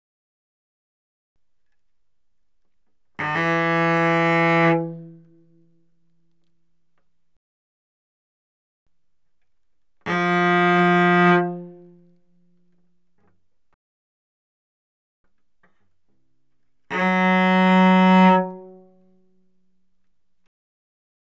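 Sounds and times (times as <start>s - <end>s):
cello bowed fortissimo on the G string: 3.2s - 6.1s, 10.0s - 12.8s, 16.6s - 19.5s.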